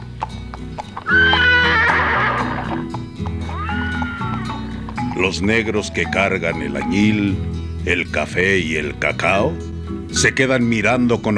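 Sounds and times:
horse hooves clip-clopping: 0.0s - 7.3s
white horse neighing: 1.0s - 5.2s
speech: 5.2s - 11.3s.

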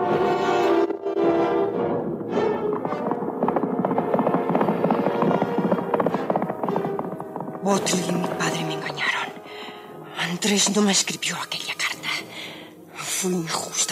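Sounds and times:
horse galloping along a road carrying its rider: 0.7s - 9.9s
speech: 7.7s - 9.1s, 10.4s - 11.7s, 13.2s - 13.9s.

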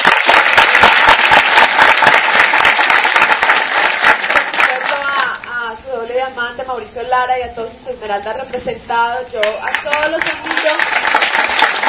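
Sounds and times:
audience applause: 0.0s - 5.2s, 9.8s - 11.8s
speech: 6.8s - 11.0s.

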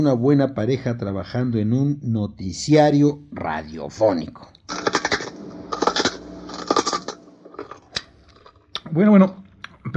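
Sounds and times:
speech: 0.0s - 5.0s, 8.9s - 9.9s
crunching on raw carrots: 4.7s - 8.8s.

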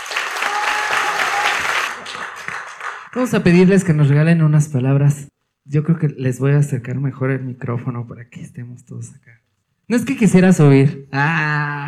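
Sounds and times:
audience applause: 0.0s - 3.3s
speech: 3.1s - 11.8s.

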